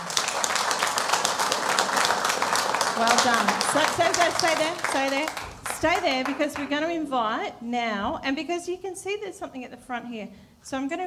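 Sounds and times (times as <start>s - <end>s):
group clapping welcoming a child up front: 0.0s - 6.9s
speech: 3.2s - 11.0s.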